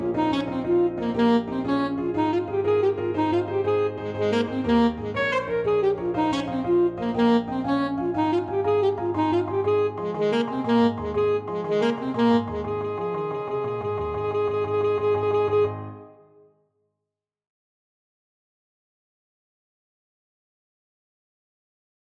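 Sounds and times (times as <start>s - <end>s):
alto saxophone: 0.0s - 16.4s.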